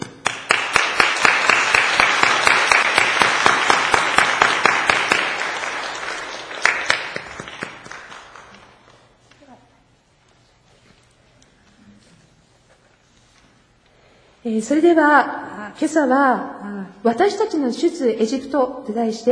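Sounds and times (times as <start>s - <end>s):
room full of people applauding: 0.2s - 9.1s
speech: 14.5s - 19.3s.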